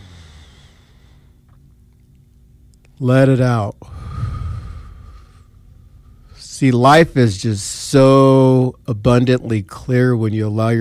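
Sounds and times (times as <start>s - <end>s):
person inhaling deeply: 0.0s - 1.4s, 3.8s - 6.4s
speech: 3.0s - 4.0s, 6.6s - 10.7s.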